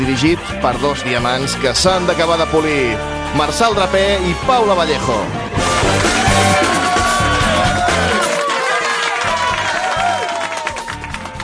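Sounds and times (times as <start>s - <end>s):
speech: 0.1s - 6.6s
audience applause: 5.7s - 11.4s.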